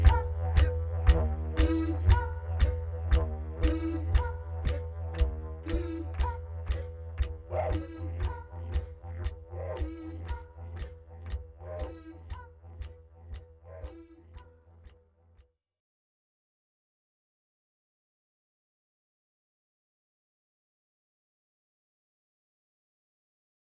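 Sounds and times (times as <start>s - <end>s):
Australian ethnic music: 0.0s - 14.8s.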